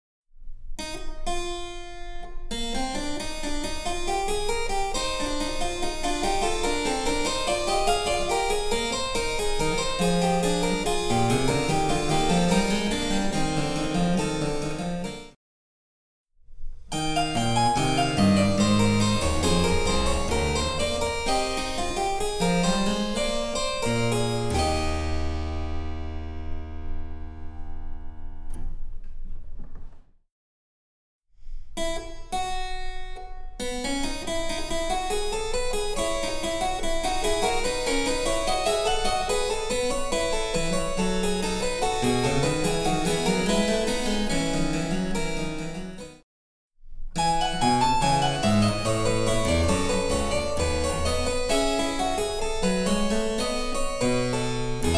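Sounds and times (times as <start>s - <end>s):
harpsichord: 1.3s - 15.4s, 16.9s - 28.6s, 33.7s - 46.2s, 47.2s - 54.9s.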